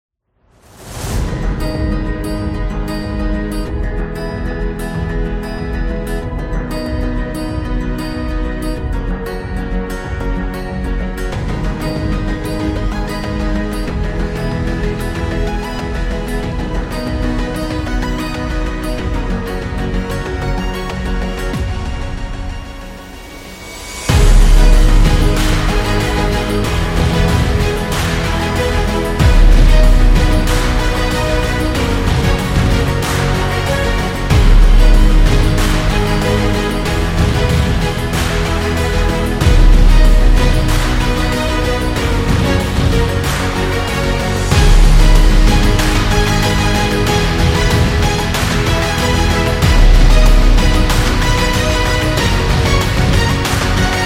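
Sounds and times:
cinematic strings corporate music: 0:00.5 - 0:54.0.

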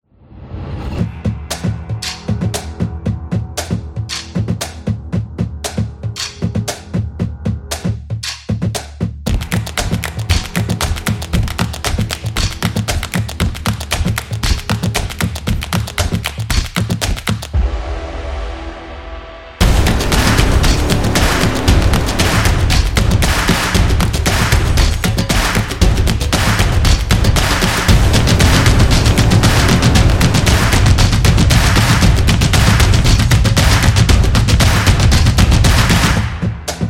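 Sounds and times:
energetic drumming: 0:01.1 - 0:17.7, 0:19.6 - 0:36.8
intro clap: 0:09.3 - 0:17.6, 0:20.1 - 0:36.4.

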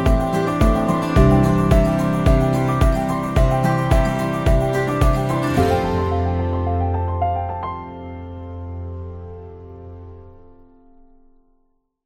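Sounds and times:
mellow acoustic guitar: 0:00.0 - 0:08.2.

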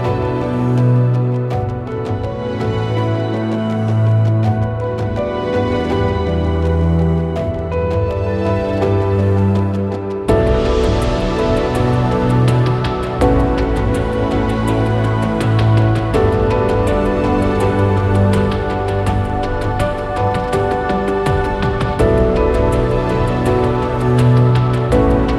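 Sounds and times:
chill ambient documentary music: 0:00.0 - 0:25.3.

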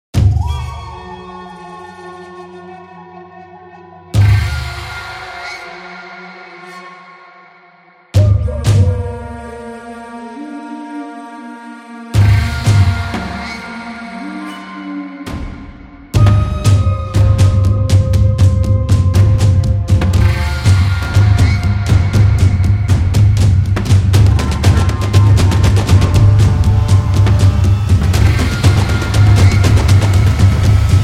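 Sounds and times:
African drums: 0:00.2 - 0:01.2, 0:04.2 - 0:05.4, 0:08.2 - 0:09.6, 0:12.2 - 0:13.9, 0:15.3 - 0:31.0.

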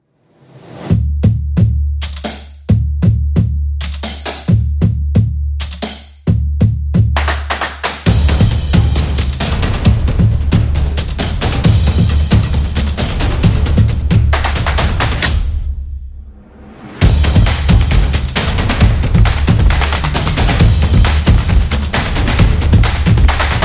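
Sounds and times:
upbeat percussion: 0:00.8 - 0:16.0, 0:16.9 - 0:23.6.

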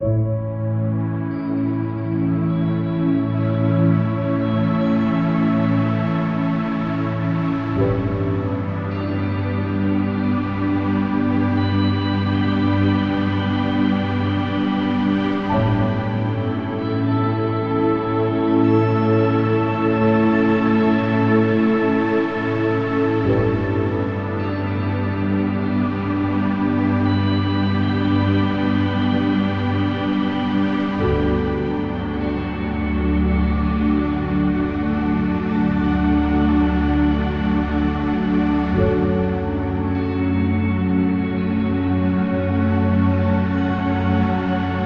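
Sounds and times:
meditation soundscape: 0:00.0 - 0:44.8.

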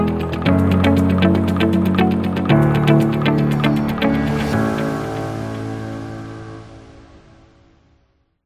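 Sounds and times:
upbeat positive music: 0:00.0 - 0:06.5.

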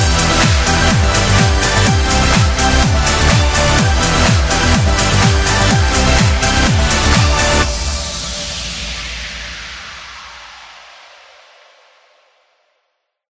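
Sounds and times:
corporate pop music: 0:00.0 - 0:08.6.

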